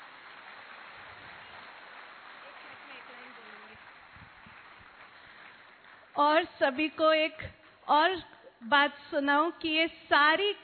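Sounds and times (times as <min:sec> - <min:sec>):
crowd applause: 0:00.0 - 0:06.1
speech: 0:06.2 - 0:10.6.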